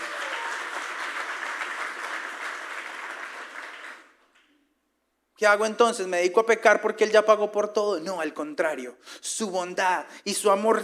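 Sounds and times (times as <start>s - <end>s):
audience applause: 0.0s - 4.2s
speech: 5.4s - 10.8s.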